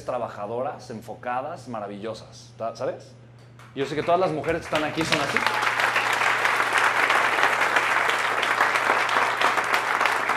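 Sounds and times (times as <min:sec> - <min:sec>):
speech: 0:00.0 - 0:05.7
audience applause: 0:04.0 - 0:10.3.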